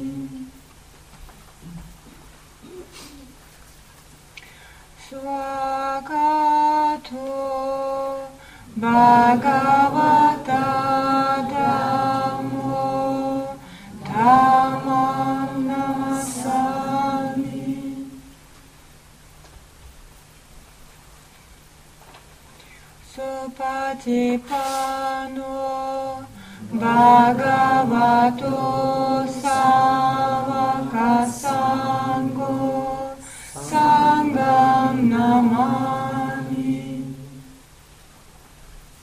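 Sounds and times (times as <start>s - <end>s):
evening puja chant: 0.0s - 0.5s, 5.1s - 18.3s, 23.1s - 37.6s.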